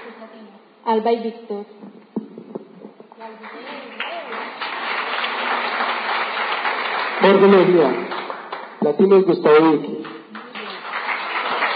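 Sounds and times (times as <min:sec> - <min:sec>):
speech: 0:00.8 - 0:02.0, 0:03.2 - 0:04.3, 0:07.2 - 0:08.2, 0:08.8 - 0:10.1
audience applause: 0:03.4 - 0:09.2, 0:10.0 - 0:11.7.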